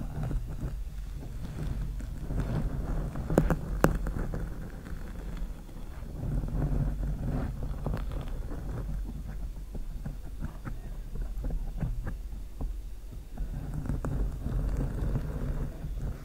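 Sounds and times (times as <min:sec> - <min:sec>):
long nails scratching slowly across a microphone: 0:00.0 - 0:16.2.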